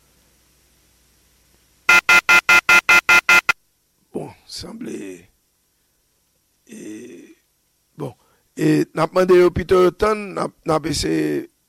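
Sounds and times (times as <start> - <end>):
telephone ringing to an answering machine: 1.9 - 3.6
speech: 8.6 - 11.5.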